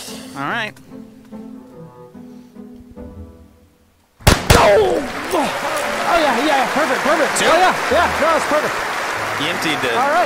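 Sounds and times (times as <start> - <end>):
speech: 0.4 - 1.5, 4.7 - 10.2
gunshot fired at a person's rib: 4.2 - 5.2.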